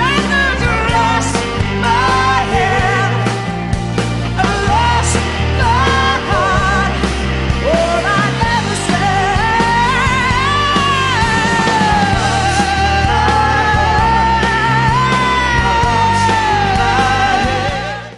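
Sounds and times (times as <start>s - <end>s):
synth bass: 0.0s - 18.1s.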